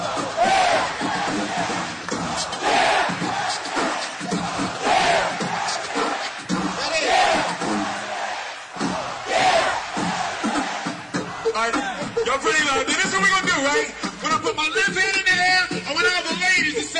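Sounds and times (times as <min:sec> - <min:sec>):
large crowd yelling a rhythmic call-and-response chant: 0:00.0 - 0:12.2
steady crowd noise: 0:00.0 - 0:16.9.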